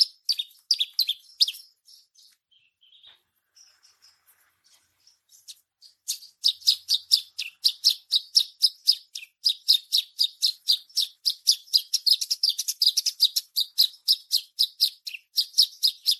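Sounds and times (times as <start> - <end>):
bushlark singing continuously: 0.0 - 16.1.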